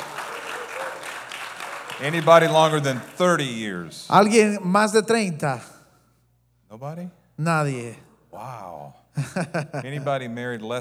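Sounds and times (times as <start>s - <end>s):
audience applause: 0.0s - 4.3s
laughter: 0.0s - 4.6s, 9.1s - 10.8s
speech: 2.0s - 5.7s, 6.7s - 10.8s.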